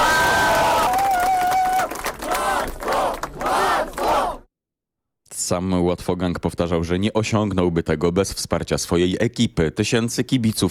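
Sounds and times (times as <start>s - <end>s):
crowd cheering and applauding: 0.0s - 4.4s
speech: 5.5s - 10.6s.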